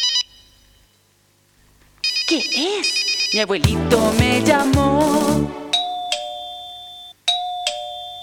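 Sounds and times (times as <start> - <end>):
speech: 2.3 - 5.6
doorbell ringing: 5.7 - 8.2.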